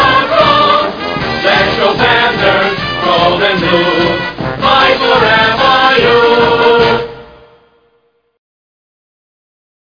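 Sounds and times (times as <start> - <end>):
singing vocals: 0.0 - 7.2.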